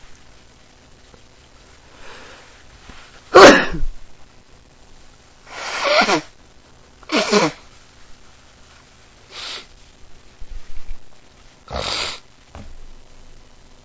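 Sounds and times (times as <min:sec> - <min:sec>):
person with morning allergies sneezing: 0:03.3 - 0:03.9, 0:05.5 - 0:06.3, 0:07.1 - 0:07.6, 0:11.7 - 0:12.2.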